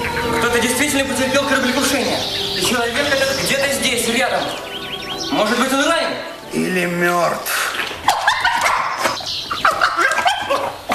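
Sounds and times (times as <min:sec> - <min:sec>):
speech: 0:00.9 - 0:07.6
dog barking and yipping: 0:08.0 - 0:10.9.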